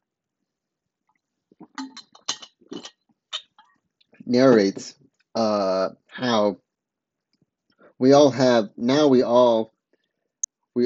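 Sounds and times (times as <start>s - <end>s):
glass of water clinking: 1.7s - 3.6s
speech: 4.3s - 6.6s, 8.0s - 9.7s.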